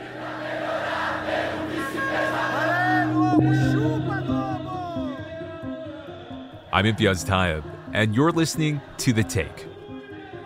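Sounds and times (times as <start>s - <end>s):
crowd of thousands of Brazilians cheering in Rio de Janeiro streets: 0.0s - 6.6s
speech: 6.8s - 9.7s.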